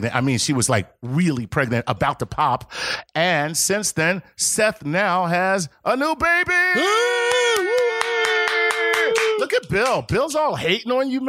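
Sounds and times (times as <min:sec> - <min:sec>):
speech: 0:00.0 - 0:07.8, 0:09.4 - 0:11.2
golf clap: 0:07.2 - 0:10.0.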